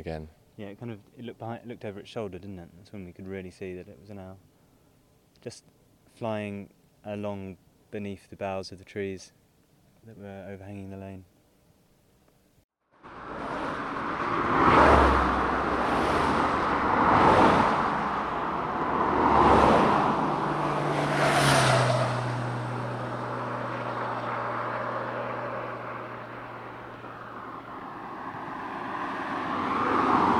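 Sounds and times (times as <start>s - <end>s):
speech: 0.0s - 4.5s, 5.4s - 9.4s, 10.0s - 11.3s
traffic passing on a busy A road: 13.0s - 30.3s.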